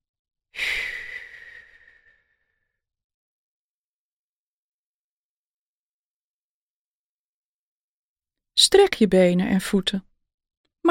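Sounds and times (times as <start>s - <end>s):
slow breathy exhale during a relaxation exercise: 0.6s - 2.8s
speech: 8.6s - 10.1s.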